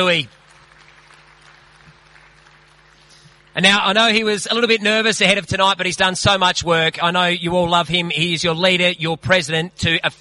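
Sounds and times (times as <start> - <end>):
speech: 0.0 - 0.4, 3.6 - 10.1
audience applause at an evening event: 0.0 - 3.9.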